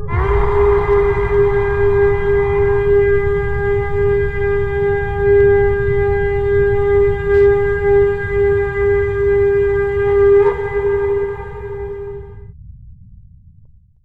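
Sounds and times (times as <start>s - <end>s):
trumpet: 0.0s - 12.5s.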